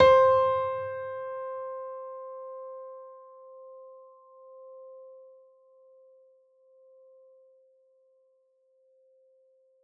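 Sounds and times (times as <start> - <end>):
gentle piano in C4: 0.0 - 6.2.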